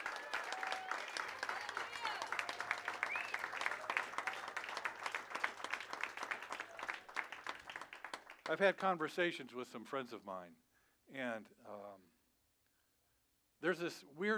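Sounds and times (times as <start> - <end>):
crowd applauding: 0.0 - 8.6
speech: 8.5 - 12.1, 13.6 - 14.3.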